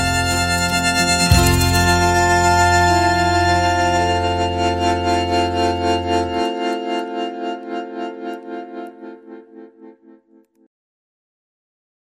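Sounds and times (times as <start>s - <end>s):
bandoneon playing a galopa: 0.0s - 9.0s.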